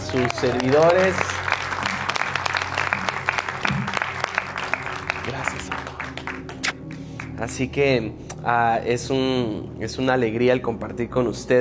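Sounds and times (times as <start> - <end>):
audience applause: 0.0 - 7.4
speech: 0.1 - 1.4, 7.4 - 11.5.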